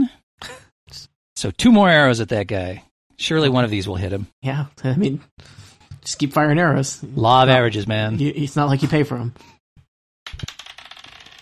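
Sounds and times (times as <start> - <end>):
speech: 1.4 - 9.6
dice clattering onto a hard tabletop: 10.3 - 11.4.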